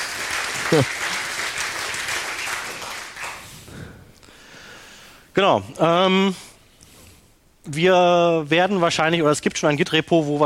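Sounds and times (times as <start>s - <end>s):
audience applause: 0.0s - 3.5s
speech: 0.7s - 1.1s, 5.4s - 6.5s, 7.6s - 10.4s.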